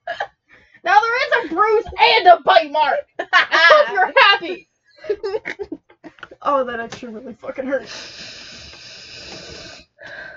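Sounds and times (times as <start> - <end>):
speech: 1.5 - 5.8, 6.4 - 8.3
laughter: 3.2 - 6.4
person breathing into microphone: 7.8 - 10.3.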